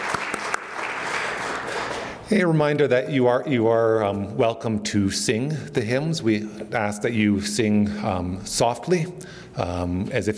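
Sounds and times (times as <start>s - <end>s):
audience applauding: 0.0s - 2.2s
speech: 2.3s - 10.3s.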